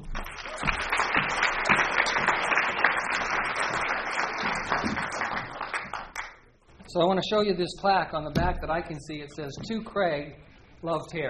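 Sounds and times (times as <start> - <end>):
audience applause: 0.0 - 6.4
speech: 6.9 - 11.2.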